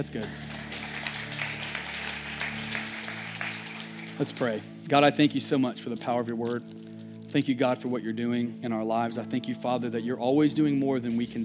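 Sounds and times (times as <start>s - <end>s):
speech: 0.0s - 0.5s, 4.2s - 11.4s
audience clapping: 0.0s - 4.8s.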